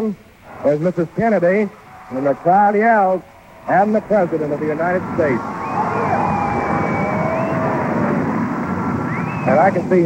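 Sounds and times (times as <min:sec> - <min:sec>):
speech: 0:00.0 - 0:06.2, 0:09.5 - 0:10.0
Air Force One taxiing in: 0:02.1 - 0:10.0.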